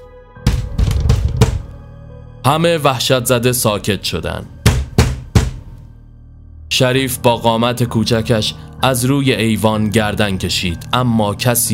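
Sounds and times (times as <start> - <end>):
fist pounding on a door: 0.5 - 1.6, 4.6 - 5.6
speech: 2.5 - 4.6, 6.8 - 11.7.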